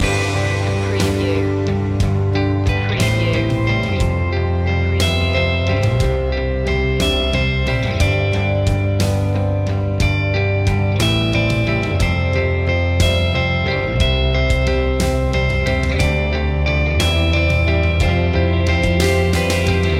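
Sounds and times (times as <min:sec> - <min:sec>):
music loop: 0:00.0 - 0:19.9.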